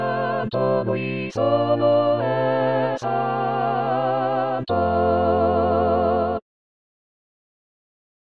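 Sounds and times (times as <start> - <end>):
choir singing: 0.0 - 6.4.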